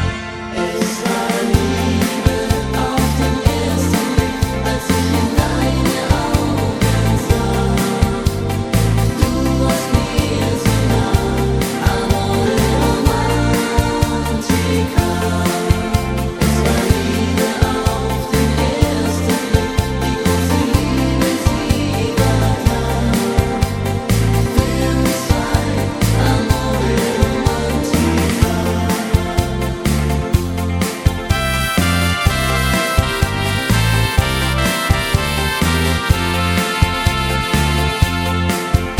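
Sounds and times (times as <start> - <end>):
choir: 0.2 - 38.9.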